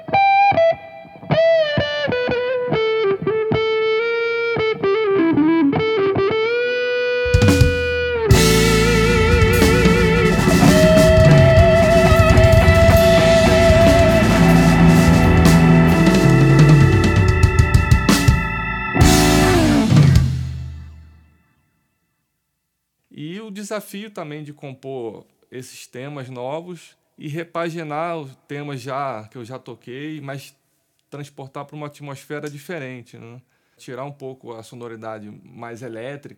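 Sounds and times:
blues music: 0:00.0 - 0:21.3.

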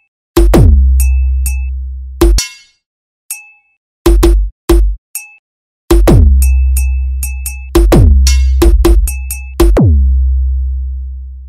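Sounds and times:
funk beat: 0:00.4 - 0:01.6, 0:02.2 - 0:02.5, 0:04.1 - 0:05.0, 0:05.9 - 0:09.9.

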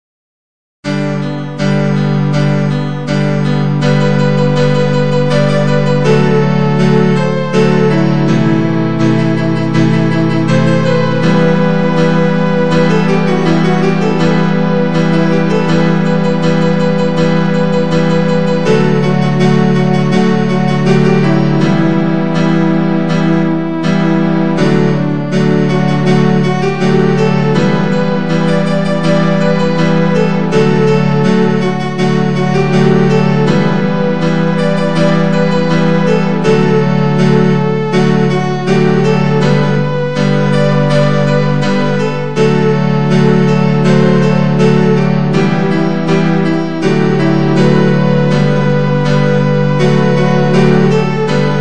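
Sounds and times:
forro music on piano: 0:00.8 - 0:51.6.

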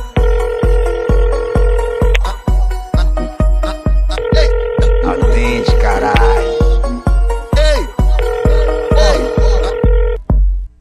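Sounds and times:
electronic dance beat: 0:00.1 - 0:10.6
mobile phone ringing tone: 0:00.2 - 0:02.4, 0:04.1 - 0:06.8, 0:08.0 - 0:10.2.

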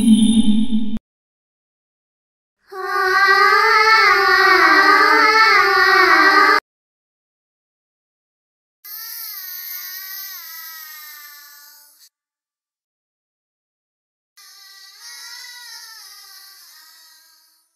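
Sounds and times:
creepy horror sounds: 0:00.0 - 0:01.0, 0:02.7 - 0:06.6
creepy little girl voice: 0:02.7 - 0:06.6.

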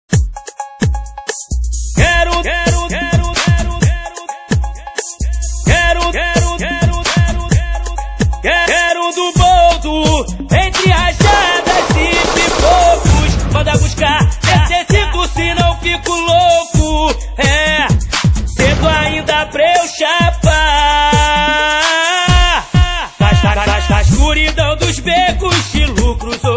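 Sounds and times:
funk beats: 0:00.1 - 0:26.5.

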